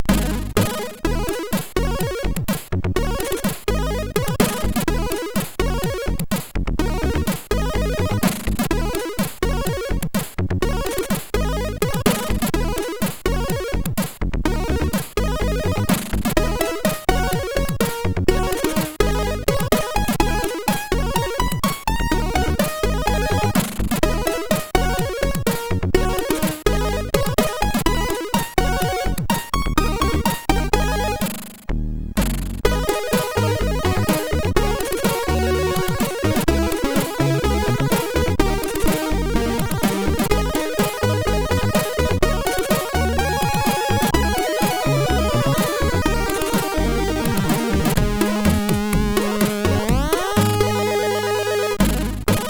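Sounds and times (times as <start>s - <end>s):
MOS6581R4 SID chip music: 0.0s - 52.4s.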